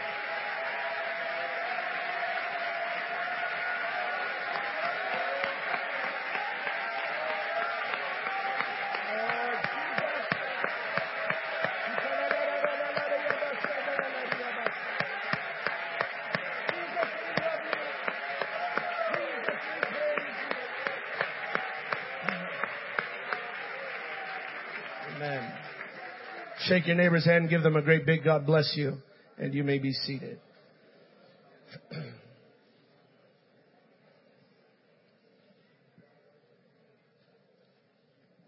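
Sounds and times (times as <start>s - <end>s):
audience clapping: 0.0s - 27.7s
speech: 26.7s - 30.5s.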